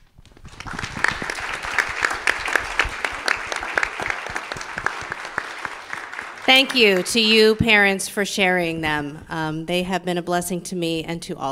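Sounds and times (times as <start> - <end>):
audience applause: 0.4 - 7.8
speech: 6.5 - 11.5.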